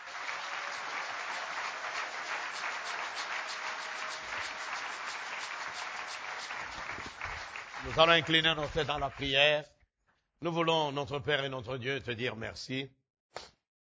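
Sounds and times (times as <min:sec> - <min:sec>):
audience applauding: 0:00.0 - 0:09.5
speech: 0:07.8 - 0:09.8, 0:10.4 - 0:13.5.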